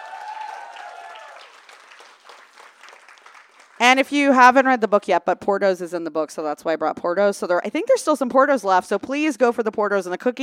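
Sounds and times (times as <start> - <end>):
audience clapping: 0.0 - 5.0
speech: 3.8 - 10.4.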